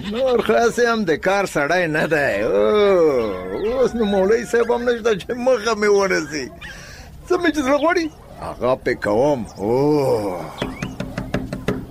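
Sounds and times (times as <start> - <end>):
speech: 0.0 - 10.8
knocking on the door of a hujra guest house: 10.6 - 11.8.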